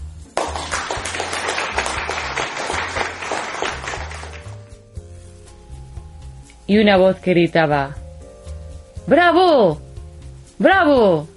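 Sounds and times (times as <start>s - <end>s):
applause from a hallway: 0.3s - 4.7s
speech: 6.7s - 8.0s, 9.0s - 9.8s, 10.6s - 11.3s.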